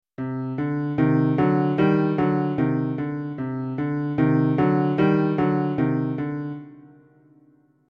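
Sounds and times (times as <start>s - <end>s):
piano: 0.2s - 7.8s.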